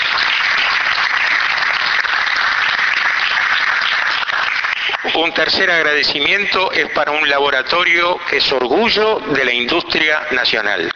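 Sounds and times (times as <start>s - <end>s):
applause: 0.0s - 8.1s
speech: 5.2s - 10.9s.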